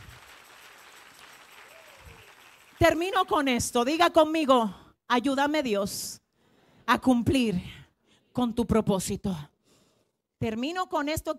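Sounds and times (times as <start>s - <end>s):
audience applause: 0.0s - 2.9s
speech: 2.8s - 6.2s, 6.9s - 7.8s, 8.4s - 9.5s, 10.4s - 11.3s.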